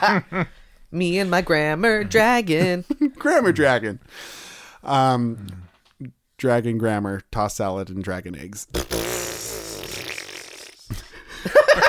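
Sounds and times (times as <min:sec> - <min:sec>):
speech: 0:00.0 - 0:09.1
fart into the microphone: 0:08.7 - 0:10.9.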